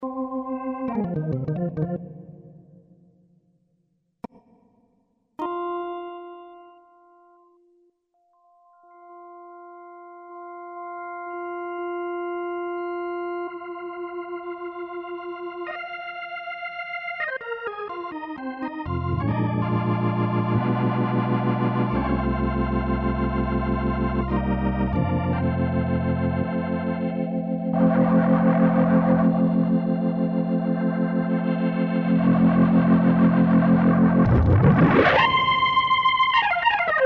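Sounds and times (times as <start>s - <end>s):
Roland VR09 Hammond organ: 0.0s - 2.8s, 5.4s - 7.3s, 8.4s - 37.0s.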